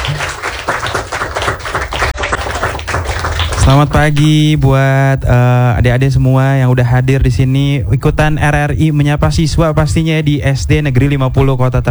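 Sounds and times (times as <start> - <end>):
children applauding: 0.0 - 4.4
speech: 3.7 - 11.8.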